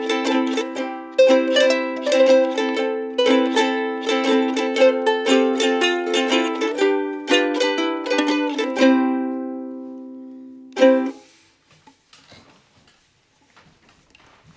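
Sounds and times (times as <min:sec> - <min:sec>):
happy ukulele music: 0:00.0 - 0:11.4.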